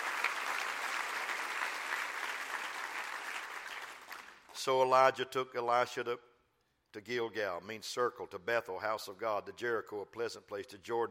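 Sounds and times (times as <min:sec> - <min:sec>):
many hands clapping: 0:00.0 - 0:04.6
speech: 0:04.6 - 0:06.3, 0:06.9 - 0:11.0.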